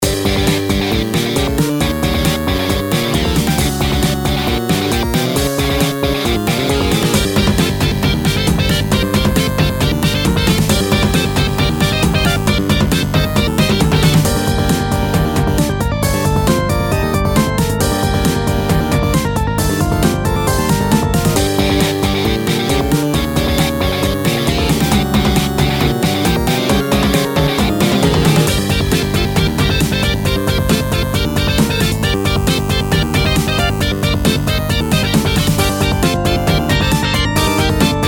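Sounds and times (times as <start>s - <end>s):
sewer battle music: 0.0s - 38.0s.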